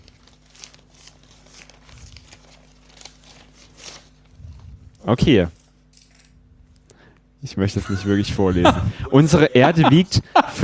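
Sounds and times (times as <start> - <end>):
envelope paper crinkling and tearing as it is opened: 0.0 - 6.4
faint steady hum: 0.0 - 10.6
speech: 5.0 - 5.6, 7.5 - 10.6
laughter: 7.6 - 10.6.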